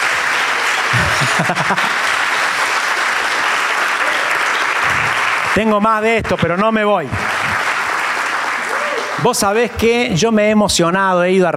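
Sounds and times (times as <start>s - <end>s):
audience applause: 0.0s - 10.4s
laughter: 0.6s - 2.7s
low voice: 0.9s - 1.4s
speech: 1.2s - 2.2s, 5.6s - 7.3s, 9.2s - 11.5s.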